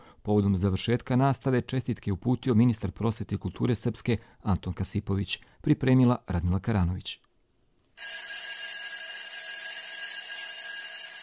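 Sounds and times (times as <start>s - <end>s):
speech: 0.2s - 7.3s
school bell ringing end of classes: 8.0s - 11.2s.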